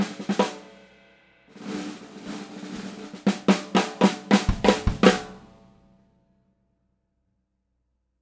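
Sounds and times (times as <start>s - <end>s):
6.5x14 cherry wood snare drum: 0.0s - 0.8s, 1.5s - 5.6s.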